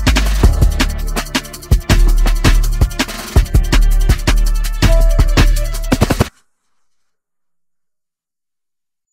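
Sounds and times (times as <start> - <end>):
instrumental music: 0.0 - 6.3.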